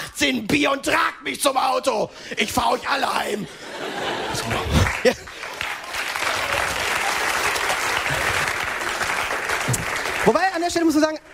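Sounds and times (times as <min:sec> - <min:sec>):
speech: 0:00.2 - 0:05.5, 0:10.3 - 0:11.3
laughter: 0:02.4 - 0:05.6
large audience applause: 0:03.9 - 0:11.3.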